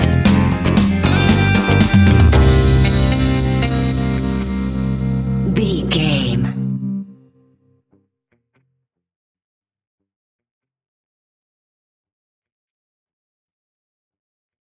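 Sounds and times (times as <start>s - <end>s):
reggae music: 0.0s - 7.4s.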